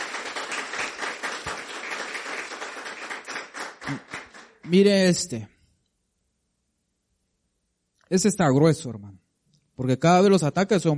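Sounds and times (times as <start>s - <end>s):
audience applause: 0.0s - 4.8s
speech: 3.9s - 5.5s, 8.1s - 9.2s, 9.8s - 10.9s.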